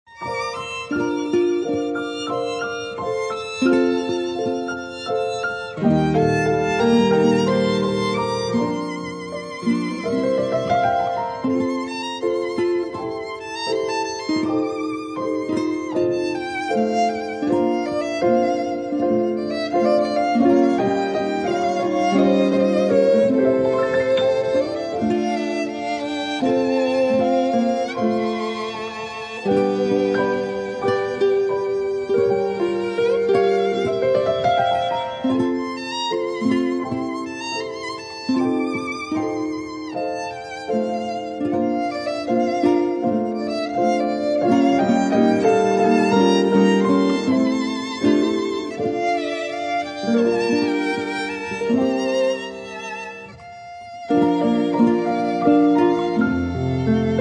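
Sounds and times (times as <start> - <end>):
strings: 0.0 - 57.1.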